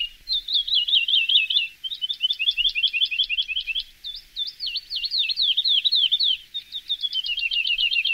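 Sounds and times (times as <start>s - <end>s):
lark song: 0.0s - 8.1s.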